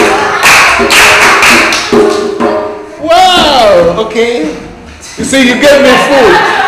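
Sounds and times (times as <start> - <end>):
laughter: 0.0 - 0.8, 5.4 - 6.6
crowd clapping hands: 0.0 - 2.5
speech: 4.1 - 4.6, 5.2 - 6.6.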